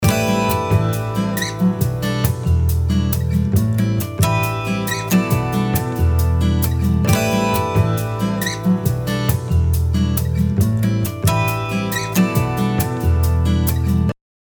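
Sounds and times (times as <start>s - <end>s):
music loop: 0.0s - 14.1s.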